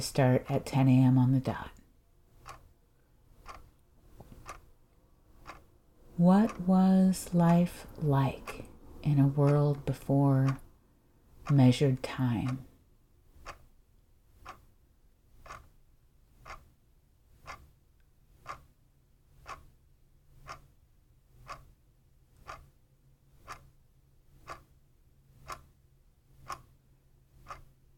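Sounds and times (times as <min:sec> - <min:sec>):
speech: 0:00.0 - 0:01.8, 0:06.2 - 0:10.6, 0:11.5 - 0:12.7
clock ticking: 0:00.0 - 0:27.9.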